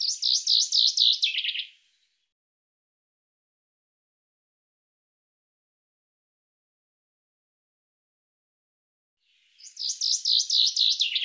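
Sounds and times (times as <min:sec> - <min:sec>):
bird trilling song: 0:00.0 - 0:02.1, 0:09.4 - 0:11.2.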